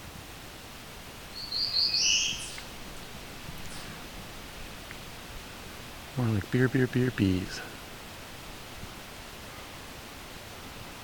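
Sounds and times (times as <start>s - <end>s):
faint steady hiss: 0.0s - 11.0s
sped-up bird song trill: 1.4s - 2.7s
speech: 6.2s - 7.7s.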